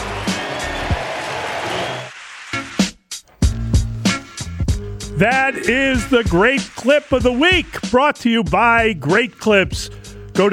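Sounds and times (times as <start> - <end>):
baseball stadium crowd cheering a home run: 0.0 - 2.9, 5.2 - 7.8
speech: 5.2 - 10.5.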